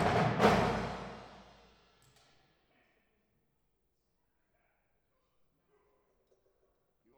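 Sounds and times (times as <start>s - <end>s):
drum solo: 0.0s - 1.6s.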